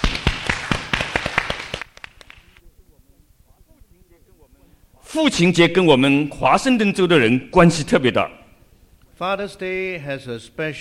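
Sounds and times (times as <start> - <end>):
audience applause: 0.0 - 2.5
speech: 5.1 - 8.4, 9.2 - 10.7.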